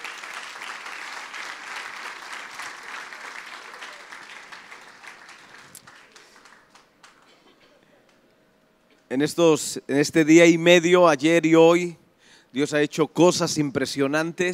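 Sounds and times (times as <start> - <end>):
audience applause: 0.0 - 7.4
speech: 9.1 - 14.5.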